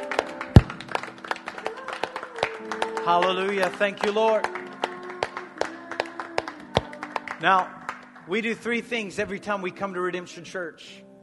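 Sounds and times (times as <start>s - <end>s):
people clapping hands: 0.0s - 8.8s
speech: 3.1s - 4.6s, 7.4s - 11.0s.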